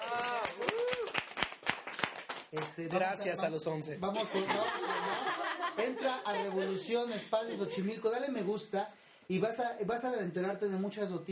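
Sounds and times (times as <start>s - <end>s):
applause: 0.0s - 3.0s
speech: 2.5s - 11.3s
laughter: 4.2s - 8.6s.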